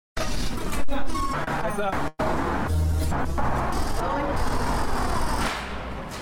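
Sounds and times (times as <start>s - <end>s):
busy New York City street traffic: 0.2s - 6.2s.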